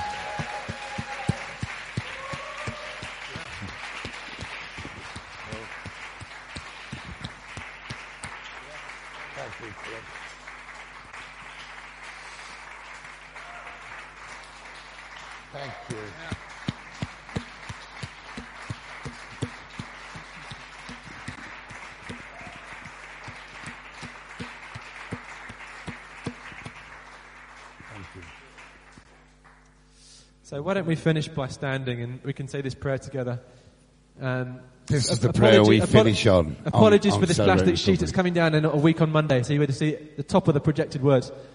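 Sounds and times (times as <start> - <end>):
audience clapping: 0.0 - 29.8
speech: 15.7 - 16.4, 30.5 - 33.6, 34.2 - 41.5.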